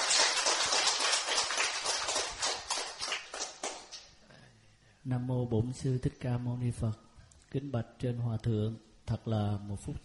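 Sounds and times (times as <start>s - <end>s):
applause: 0.0s - 4.1s
speech: 5.0s - 10.0s.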